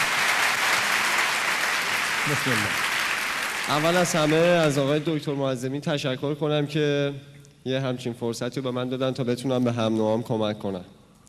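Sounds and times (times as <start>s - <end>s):
audience clapping for a young man introducing himself at a talk: 0.0s - 5.3s
speech: 2.2s - 2.9s, 3.7s - 11.0s.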